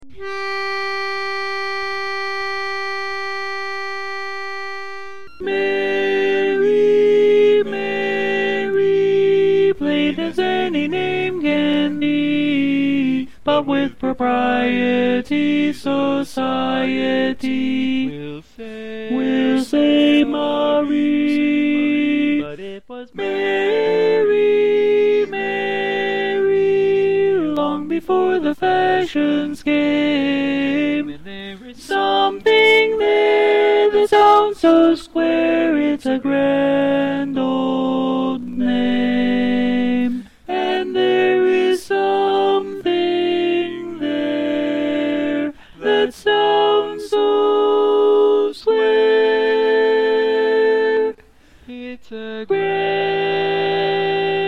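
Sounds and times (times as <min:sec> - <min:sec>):
tenor singing: 0:00.0 - 0:54.4.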